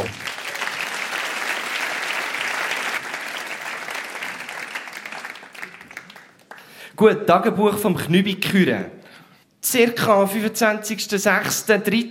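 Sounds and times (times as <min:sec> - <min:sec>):
audience applause: 0:00.0 - 0:06.8
speech: 0:07.0 - 0:09.0, 0:09.6 - 0:12.0.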